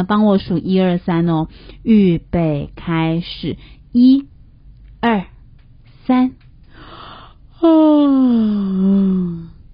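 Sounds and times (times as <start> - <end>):
speech: 0.0 - 4.3, 5.0 - 5.3, 6.1 - 6.4, 7.6 - 9.5
exaggerated yawn: 7.6 - 9.6.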